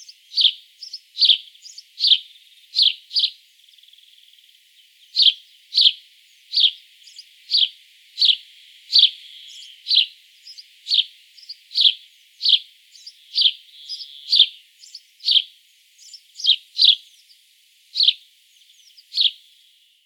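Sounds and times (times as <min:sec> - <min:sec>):
house sparrow chirping: 0:00.0 - 0:19.8.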